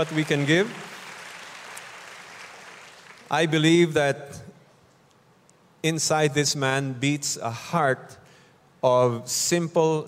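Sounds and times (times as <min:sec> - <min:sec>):
speech: 0:00.0 - 0:00.9, 0:03.3 - 0:04.5, 0:05.8 - 0:08.2, 0:08.8 - 0:10.0
audience clapping: 0:00.0 - 0:03.5.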